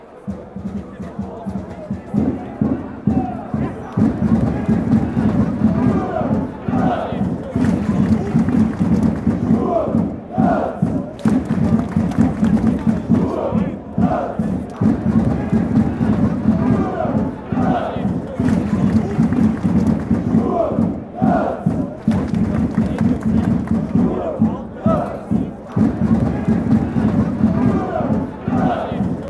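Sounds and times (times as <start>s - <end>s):
football fans chanting: 0.0s - 29.2s
Sturm Graz fans drumming: 0.2s - 29.2s
Sturm Graz fans clapping: 6.8s - 9.8s, 10.8s - 13.7s, 14.4s - 20.7s, 21.3s - 29.2s.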